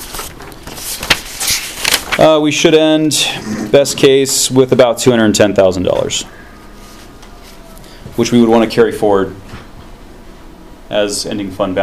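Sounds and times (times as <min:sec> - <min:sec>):
rifling through a stack of paper: 0:00.0 - 0:04.1
speech: 0:02.2 - 0:06.5, 0:08.2 - 0:09.5, 0:10.9 - 0:11.8.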